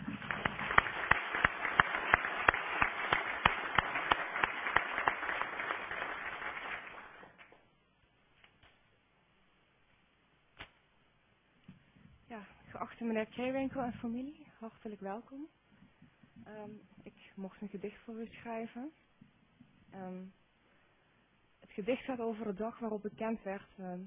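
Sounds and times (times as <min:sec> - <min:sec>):
audience applause: 0:00.0 - 0:07.6
speech: 0:13.0 - 0:15.6, 0:16.5 - 0:19.1, 0:19.9 - 0:20.4, 0:21.8 - 0:24.0.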